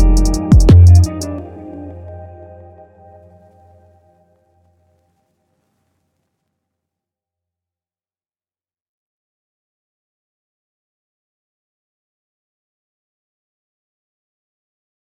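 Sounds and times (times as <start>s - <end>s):
GTRnB music: 0.0s - 2.6s.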